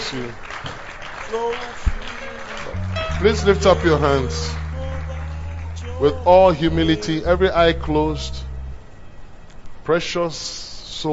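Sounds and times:
audience clapping: 0.0 - 6.2
speech: 0.1 - 2.0, 3.2 - 4.6, 6.0 - 8.5, 9.8 - 11.1.

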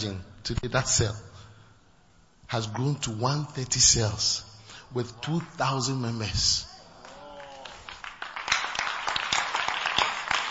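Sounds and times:
speech: 0.0 - 1.3, 2.5 - 6.7
audience clapping: 5.2 - 6.0, 6.7 - 10.4.

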